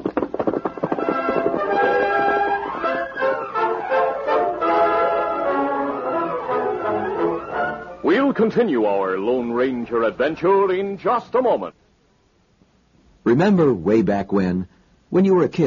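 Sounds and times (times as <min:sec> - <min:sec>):
horse galloping away: 0:00.0 - 0:07.6
loud sweeping music: 0:01.0 - 0:08.2
speech: 0:08.4 - 0:11.8, 0:13.3 - 0:15.6.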